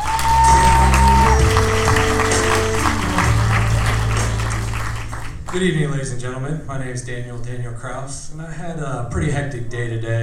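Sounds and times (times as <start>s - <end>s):
audience applause for a comedian coming on stage at a comedy show: 0.0s - 6.0s
speech: 5.5s - 10.2s.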